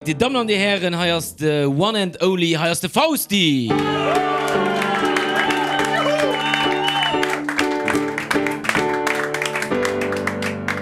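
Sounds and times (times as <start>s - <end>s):
speech: 0.0s - 4.7s
applause and cheering for a performer introduced on stage: 3.7s - 10.8s
loud music with sustained tones: 3.7s - 10.8s.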